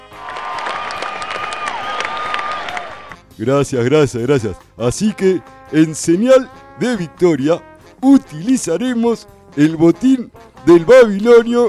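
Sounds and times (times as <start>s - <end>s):
cheers: 0.0s - 3.2s
crowd applause: 0.0s - 3.2s
speech: 3.4s - 11.6s.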